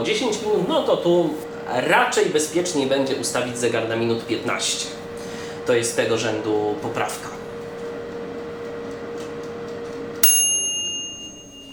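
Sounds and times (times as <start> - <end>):
speech: 0.0 - 7.4
low combi oven hum: 0.0 - 11.7
combi oven end-of-cycle bell ding: 10.2 - 11.7.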